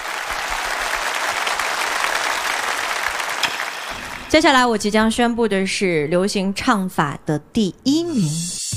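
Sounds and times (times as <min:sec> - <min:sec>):
audience applause: 0:00.0 - 0:04.3
speech: 0:04.3 - 0:08.6.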